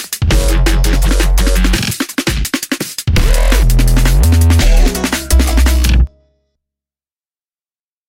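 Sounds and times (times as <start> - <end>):
rumbling bass synth: 0.3 - 1.9, 3.2 - 6.1.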